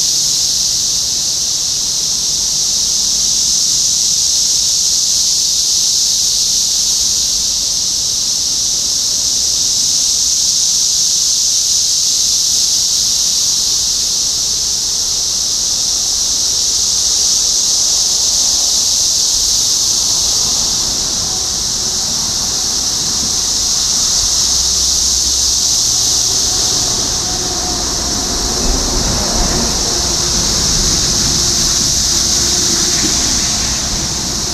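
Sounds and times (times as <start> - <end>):
cicadas buzzing: 0.0 - 34.5
vehicle rumble: 16.0 - 34.5.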